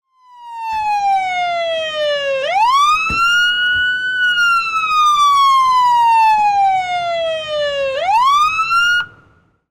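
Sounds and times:
police siren: 0.0s - 9.5s.

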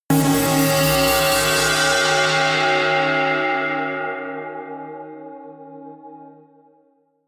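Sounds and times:
bitslice synthesizer: 0.1s - 6.5s.

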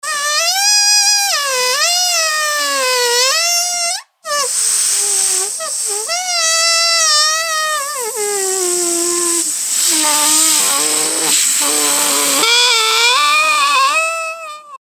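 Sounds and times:
balloon squeaking: 0.0s - 14.8s.

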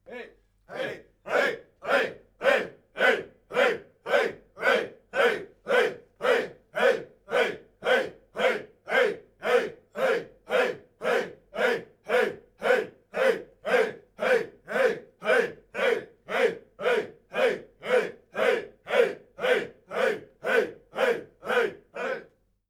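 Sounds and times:
simple chants: 0.0s - 22.4s.

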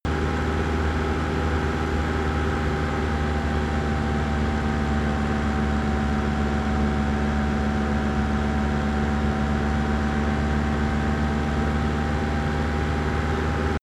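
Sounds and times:
van engine running steadily at 2000 rpm: 0.0s - 13.8s.

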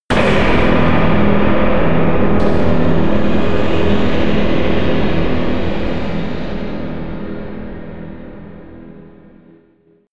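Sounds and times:
crush hit: 0.1s - 6.9s.

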